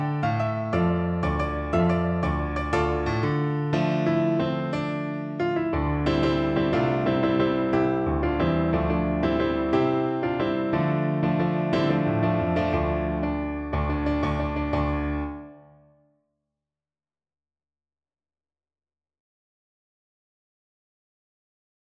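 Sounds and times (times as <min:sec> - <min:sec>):
piano: 0:00.0 - 0:16.1.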